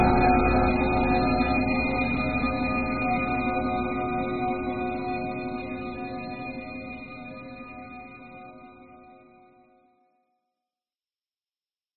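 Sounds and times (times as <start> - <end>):
spooky place ambience: 0.0 - 7.2.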